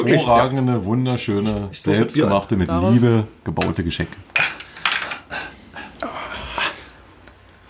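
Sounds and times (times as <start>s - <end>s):
speech: 0.0s - 4.4s
punch glasses clinking in a toast: 4.3s - 5.3s.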